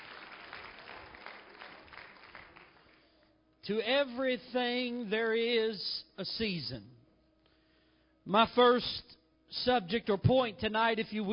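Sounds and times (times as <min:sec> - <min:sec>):
audience hand clap of praise: 0:00.0 - 0:03.2
speech: 0:03.7 - 0:07.0, 0:08.3 - 0:11.3.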